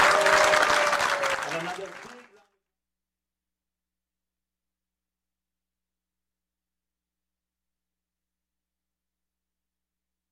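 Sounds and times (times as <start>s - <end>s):
audience applause for tabla player: 0.0s - 2.5s.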